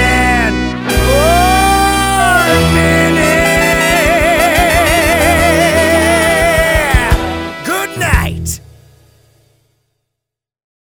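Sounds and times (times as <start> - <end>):
person singing: 0.0 - 8.6.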